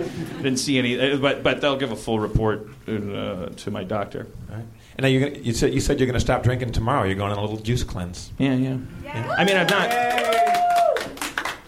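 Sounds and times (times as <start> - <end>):
speech: 0.4 - 10.4
clapping applause: 9.4 - 11.6.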